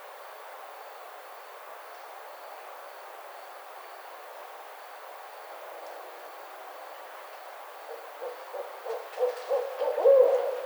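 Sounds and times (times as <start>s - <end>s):
barred owl hooting: 8.2s - 10.6s.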